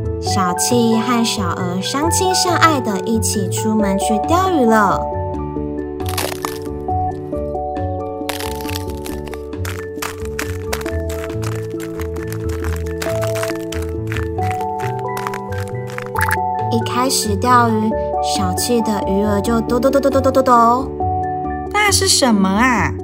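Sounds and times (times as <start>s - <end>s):
music: 0.0s - 23.0s
speech: 0.3s - 5.2s, 17.1s - 21.0s, 21.9s - 23.0s
ice being chipped open with a hole: 6.1s - 6.8s, 8.3s - 16.4s.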